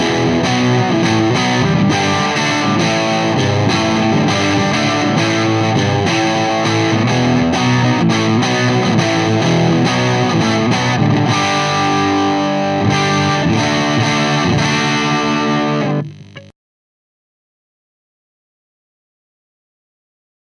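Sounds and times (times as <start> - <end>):
P90 lead guitar through a three-channel amplifier at full volume: 0.0 - 16.5.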